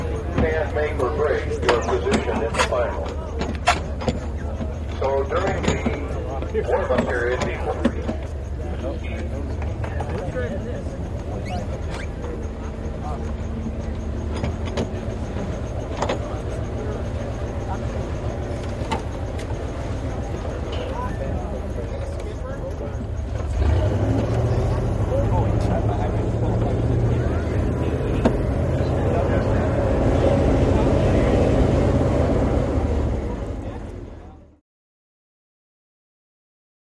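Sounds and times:
motorboats at a boat race pit dock: 0:00.0 - 0:34.6.

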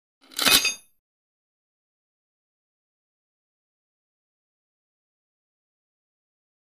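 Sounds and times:
iron shackles chain impacts and metal crashes: 0:00.2 - 0:00.9.

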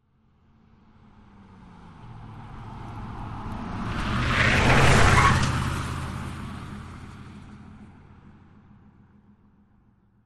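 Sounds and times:
Jeep Wagoneer passing fast around a corner: 0:01.4 - 0:07.7
Jeep Wagoneer tires skidding: 0:02.7 - 0:07.1.

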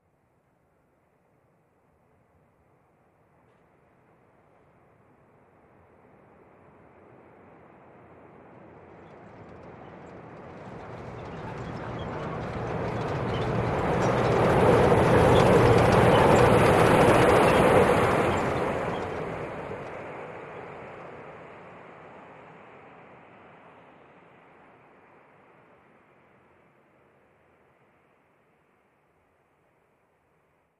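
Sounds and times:
Chicago El elevated train passing: 0:07.0 - 0:21.4.

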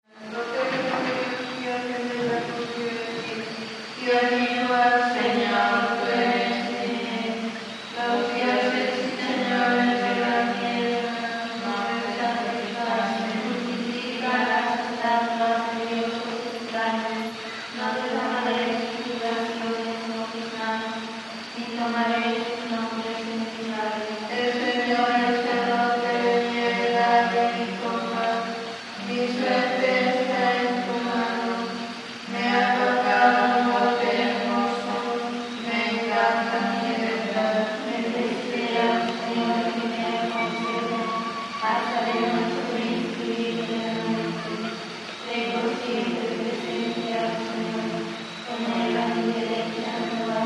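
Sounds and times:
nuns chanting vespers: 0:00.0 - 0:50.4.

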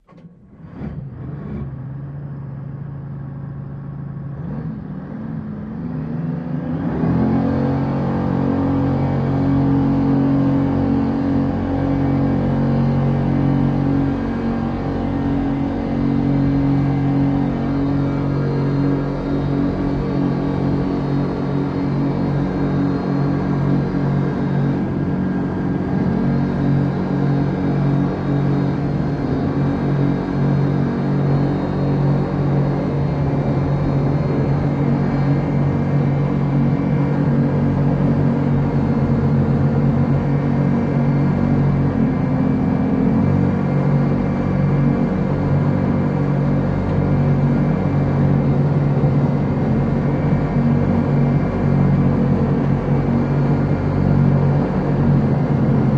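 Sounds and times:
military PBR boat dual engines starting, accelerating and maneuvering, heard onboard: 0:00.0 - 0:55.9.

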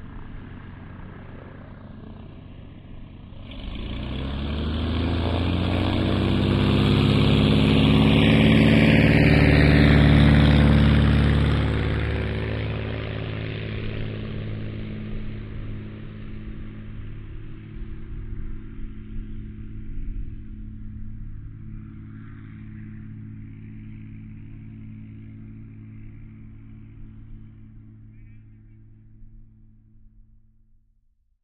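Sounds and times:
heavy glider tow plane engine: 0:00.0 - 0:30.6.

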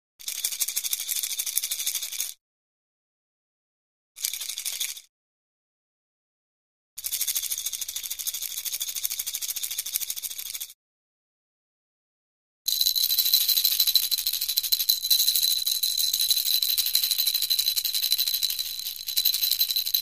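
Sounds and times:
various plastic baby rattle shakes: 0:00.2 - 0:02.4, 0:04.2 - 0:05.1, 0:07.0 - 0:10.8, 0:12.7 - 0:19.9.

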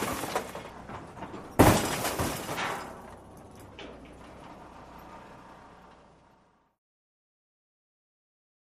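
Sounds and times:
car crashes at an auto wrecker: 0:00.0 - 0:04.7.

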